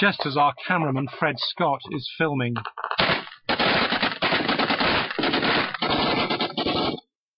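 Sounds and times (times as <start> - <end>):
speech: 0.0 - 3.1
automatic gunfire as a base returns fire: 3.0 - 7.0.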